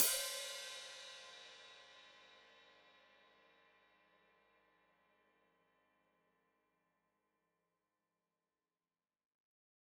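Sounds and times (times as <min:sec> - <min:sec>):
open hi-hat played with foot: 0:00.0 - 0:01.9.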